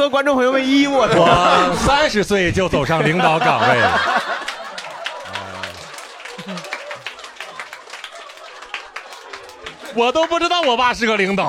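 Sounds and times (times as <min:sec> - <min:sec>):
speech: 0:00.0 - 0:04.3, 0:10.0 - 0:11.4
laughter: 0:00.8 - 0:11.3
audience applause: 0:03.0 - 0:11.4.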